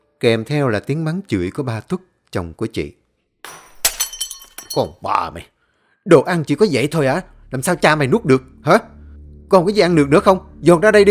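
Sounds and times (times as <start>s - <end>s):
speech: 0.2s - 3.0s, 4.7s - 11.1s
crockery smashing and clattering: 3.5s - 5.0s.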